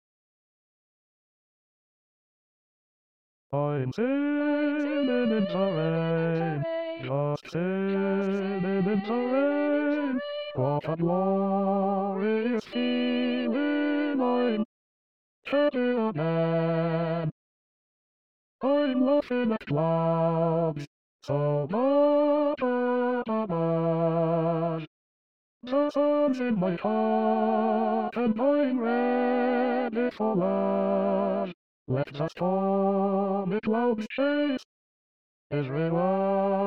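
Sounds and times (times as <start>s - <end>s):
bass voice singing in SATB choral arrangement: 3.6s - 14.7s, 15.5s - 17.3s, 18.6s - 24.8s, 25.7s - 34.6s, 35.5s - 36.6s.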